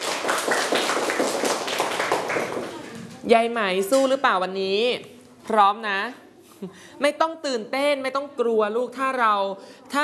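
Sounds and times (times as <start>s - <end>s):
audience clapping: 0.0s - 3.0s
speech: 3.3s - 10.0s.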